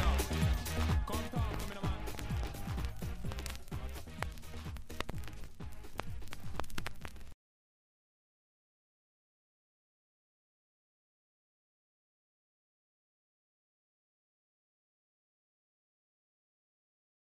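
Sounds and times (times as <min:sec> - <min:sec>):
90's dance music: 0:00.0 - 0:07.3.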